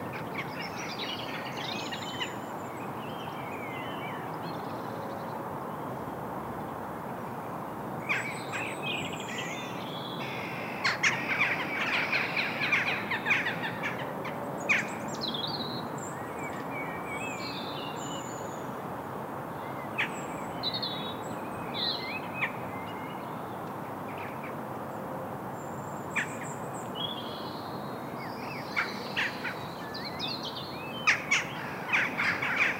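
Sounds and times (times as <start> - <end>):
garden soundscape: 0.0 - 25.0, 25.6 - 32.7.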